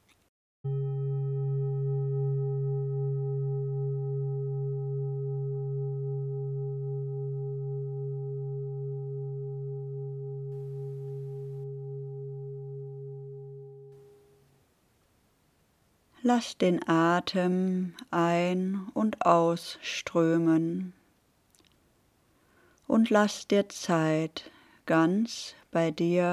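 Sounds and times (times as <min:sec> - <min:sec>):
meditation gong: 0:00.7 - 0:13.9
speech: 0:16.3 - 0:21.0, 0:23.0 - 0:26.3.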